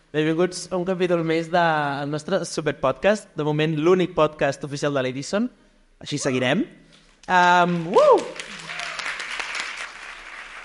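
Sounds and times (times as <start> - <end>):
speech: 0.1 - 8.2
live audience applauding and cheering: 7.5 - 10.6.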